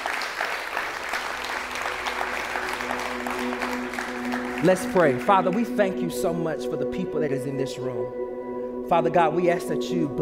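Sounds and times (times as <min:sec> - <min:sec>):
audience hand clap: 0:00.0 - 0:06.4
speech: 0:04.6 - 0:08.2, 0:08.9 - 0:10.2.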